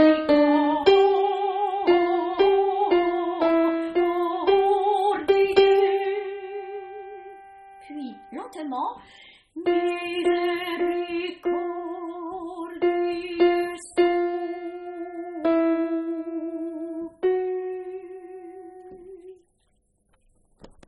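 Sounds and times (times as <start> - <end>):
alto voice singing: 0.0 - 7.2, 9.6 - 17.0.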